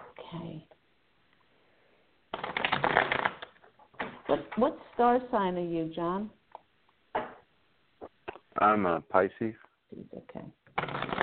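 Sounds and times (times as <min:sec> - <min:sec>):
deck of cards shuffled for a card reading: 0:02.3 - 0:04.2, 0:10.7 - 0:11.2
speech: 0:04.3 - 0:06.4, 0:08.6 - 0:10.6.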